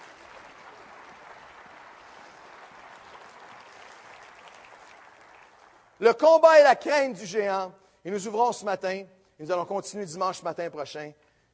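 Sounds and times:
audience applause: 0:00.0 - 0:06.0
speech: 0:06.0 - 0:11.2.

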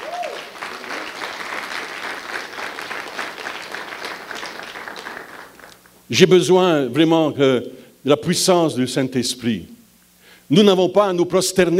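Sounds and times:
audience applause: 0:00.0 - 0:05.9
speech: 0:06.1 - 0:09.8, 0:10.5 - 0:11.7.

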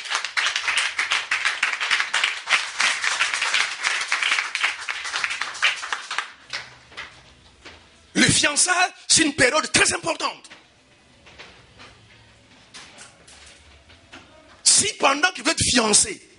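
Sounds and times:
church congregation applauding the Lord: 0:00.0 - 0:06.8
speech: 0:08.3 - 0:10.5, 0:15.0 - 0:16.3.

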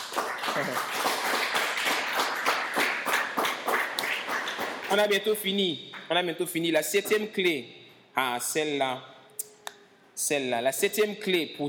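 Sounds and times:
church congregation clapping rhythmically to acclaim the Lord: 0:00.0 - 0:06.2
speech: 0:00.6 - 0:01.1, 0:04.9 - 0:09.1, 0:10.2 - 0:11.6.

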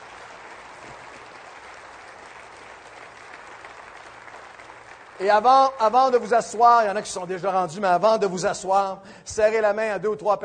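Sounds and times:
audience applause: 0:00.0 - 0:06.3
speech: 0:05.2 - 0:10.4.

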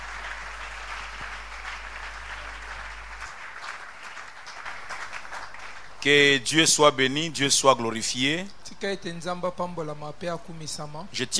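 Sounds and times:
congregation clapping at a church prayer gathering: 0:00.0 - 0:06.4
speech: 0:06.0 - 0:11.3.

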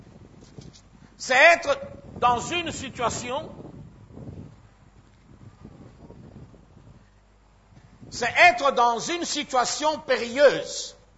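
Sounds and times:
wind buffeting a microphone outdoors: 0:00.0 - 0:08.7
man preaching a French sermon: 0:01.2 - 0:03.6, 0:08.1 - 0:11.0
speech: 0:01.2 - 0:03.6, 0:08.2 - 0:11.0.

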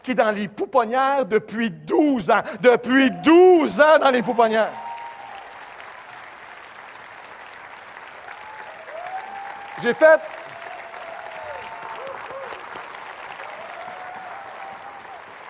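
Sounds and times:
speech: 0:00.0 - 0:04.8, 0:09.8 - 0:10.4
applause: 0:03.2 - 0:15.4.

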